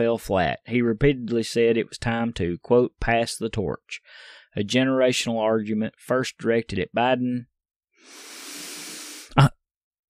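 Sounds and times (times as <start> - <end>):
speech: 0.0 - 8.3, 9.4 - 9.6
person sniffing: 8.0 - 9.5.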